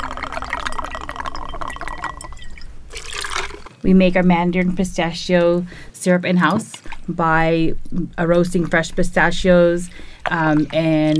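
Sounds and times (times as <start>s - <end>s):
citrus juice pouring into a cocktail shaker: 0.0s - 3.8s, 8.2s - 11.1s
speech: 3.8s - 11.1s.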